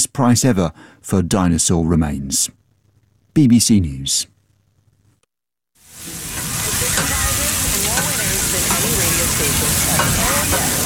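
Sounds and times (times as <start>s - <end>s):
speech: 0.0s - 2.6s, 3.4s - 4.3s
burgers sizzling on a backyard grill: 5.8s - 10.8s.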